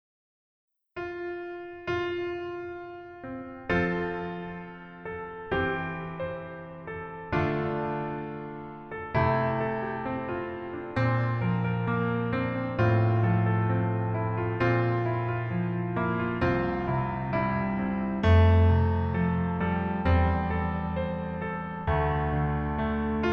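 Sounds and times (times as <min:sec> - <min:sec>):
piano melody backing track: 0:01.0 - 0:23.3.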